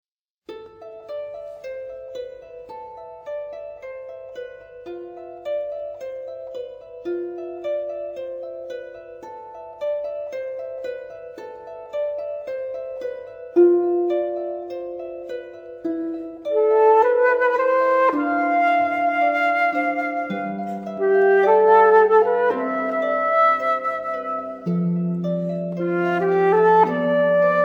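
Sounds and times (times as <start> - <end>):
harp: 0.5 - 27.6.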